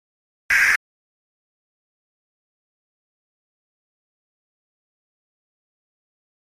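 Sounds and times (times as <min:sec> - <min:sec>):
HF radio static: 0:00.5 - 0:00.8.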